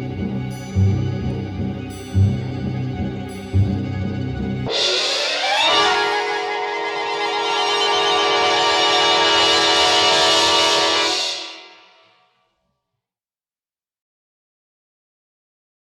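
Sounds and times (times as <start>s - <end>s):
stormy dramatic swirling shock sting: 0.6s - 12.2s.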